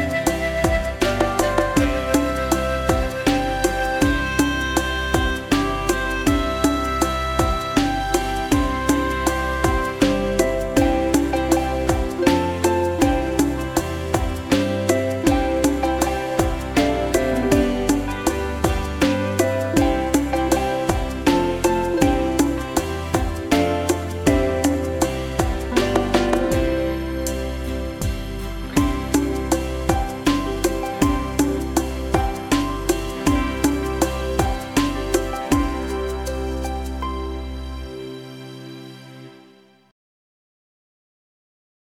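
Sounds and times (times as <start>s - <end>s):
bongos: 0.0s - 37.0s.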